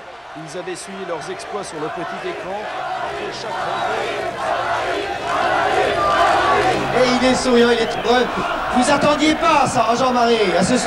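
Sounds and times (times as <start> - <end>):
large crowd on Brussels' Grand Place roaring for the Red Devils: 0.0 - 10.8
shouting and cheering voices: 0.0 - 10.8
speech: 0.4 - 10.8.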